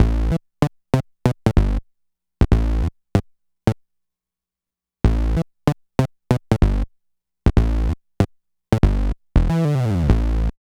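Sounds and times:
bass: 0.0s - 0.4s, 1.4s - 1.8s, 2.4s - 3.3s, 5.0s - 10.6s.

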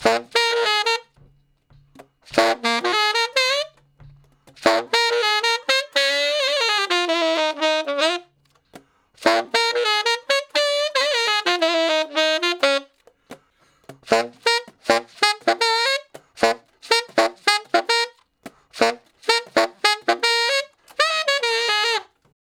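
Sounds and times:
tenor sax shuffle in B flat: 0.0s - 22.4s.

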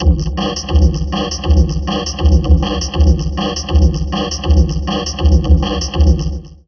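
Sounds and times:
heavily processed drum loop: 0.0s - 6.6s.

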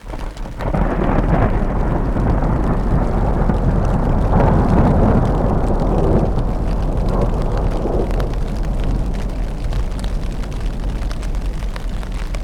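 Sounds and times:
weather on a glacier: 0.0s - 12.4s.

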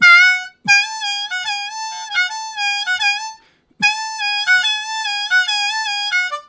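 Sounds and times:
harmonica swoop: 0.0s - 6.4s.

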